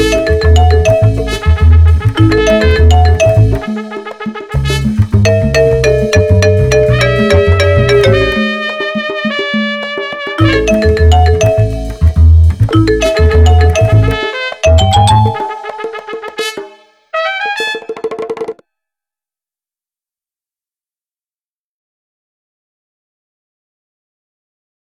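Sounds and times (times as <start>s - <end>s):
marimba: 0.0s - 16.4s.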